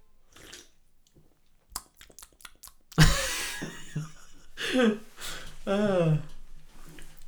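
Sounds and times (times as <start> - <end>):
person imitating lip smacking after a sip: 1.7 - 3.0
laughter: 3.0 - 5.1.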